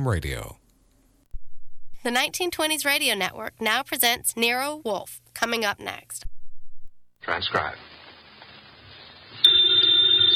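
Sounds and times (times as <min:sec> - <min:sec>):
speech: 0:00.0 - 0:00.6, 0:02.0 - 0:06.3, 0:07.2 - 0:07.9
telephone bell ringing: 0:09.4 - 0:10.3.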